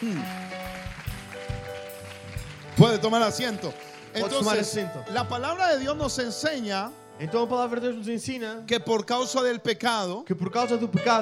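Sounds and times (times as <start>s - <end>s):
speech: 0.0s - 0.4s, 2.8s - 11.1s
loud applause: 0.0s - 4.5s.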